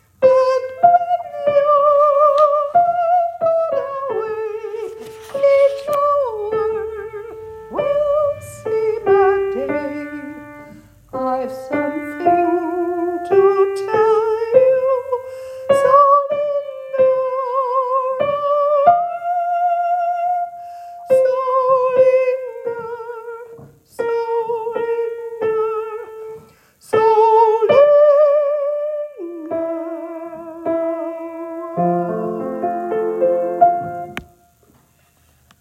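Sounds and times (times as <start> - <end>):
soprano singing: 0.0 - 34.4.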